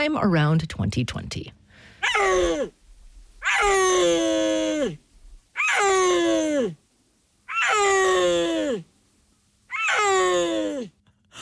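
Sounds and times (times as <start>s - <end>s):
speech: 0.0s - 2.8s, 3.6s - 5.0s
Central Asian mountain big cat yowling: 2.0s - 2.8s, 3.4s - 6.8s, 7.5s - 8.9s, 9.7s - 10.9s.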